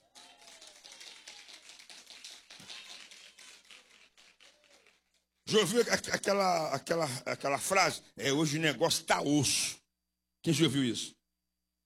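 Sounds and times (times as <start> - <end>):
audience clapping: 0.0 - 5.9
speech: 5.5 - 9.8, 10.4 - 11.2.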